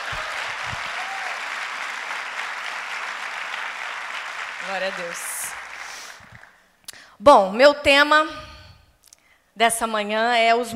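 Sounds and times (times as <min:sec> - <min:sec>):
audience applauding: 0:00.0 - 0:06.6
speech: 0:04.7 - 0:05.6, 0:07.2 - 0:08.4, 0:09.6 - 0:10.7.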